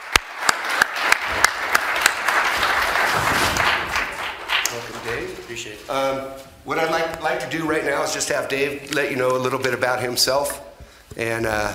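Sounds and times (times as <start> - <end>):
audience applause welcoming a speaker at a John Carroll University gathering: 0.0 - 5.3
speech: 5.5 - 11.7.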